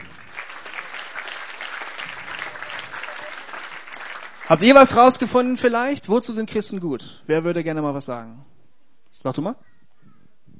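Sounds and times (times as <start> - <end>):
room full of people clapping: 0.0 - 5.3
speech: 4.5 - 8.5, 9.1 - 9.7.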